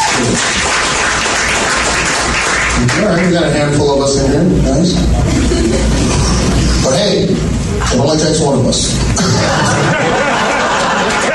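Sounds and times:
audience clapping at a comedy show: 0.0s - 3.8s, 10.5s - 11.3s
speech: 2.8s - 10.4s
laughter: 5.1s - 6.8s, 9.2s - 11.3s.

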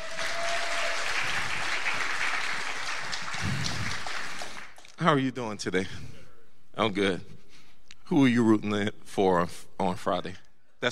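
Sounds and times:
audience clapping: 0.0s - 5.0s
speech: 5.0s - 6.2s, 6.8s - 7.4s, 8.1s - 10.9s.

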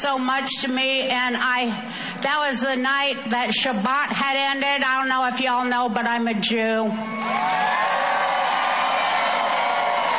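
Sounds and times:
speech: 0.0s - 8.0s
audience cheering and whooping: 7.1s - 10.1s.

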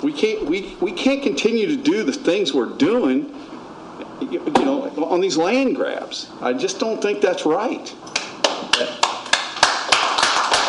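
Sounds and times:
speech: 0.0s - 3.5s, 4.2s - 8.2s
audience applause at Springfield City Council meeting: 8.7s - 10.6s.

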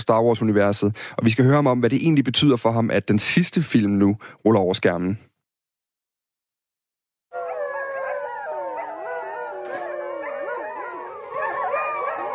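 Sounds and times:
speech: 0.0s - 5.3s
Greenlandic sled dogs howling: 7.3s - 12.3s.

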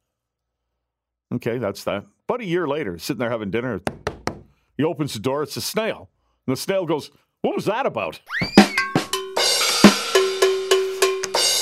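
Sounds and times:
speech: 1.3s - 4.1s, 4.8s - 8.6s
drum kit sting with cowbell: 8.4s - 11.6s.

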